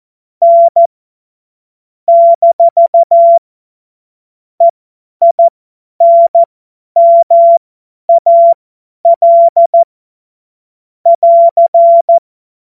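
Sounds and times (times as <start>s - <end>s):
CW Morse code beeps: 0.4s - 0.9s, 2.1s - 3.4s, 4.6s - 9.9s, 11.1s - 12.2s.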